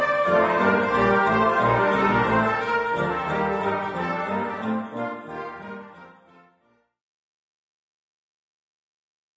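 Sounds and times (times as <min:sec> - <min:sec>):
Christmas carols: 0:00.0 - 0:06.6.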